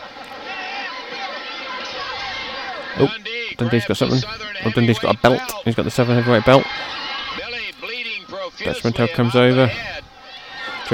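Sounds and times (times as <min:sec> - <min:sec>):
wrestling arena crowd cheering and babbling: 0:00.0 - 0:10.9
speech: 0:03.0 - 0:07.1, 0:08.7 - 0:10.0.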